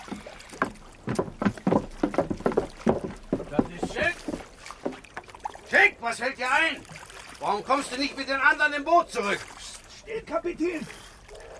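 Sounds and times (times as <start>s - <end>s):
sailor swimming, splashing through water: 0.0s - 5.7s, 6.8s - 10.1s
speech: 5.8s - 9.5s, 10.1s - 11.0s.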